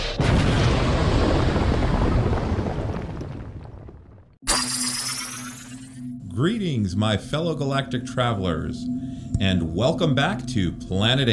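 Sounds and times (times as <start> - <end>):
explosion sound effect: 0.0 - 5.9
speech: 6.4 - 11.3.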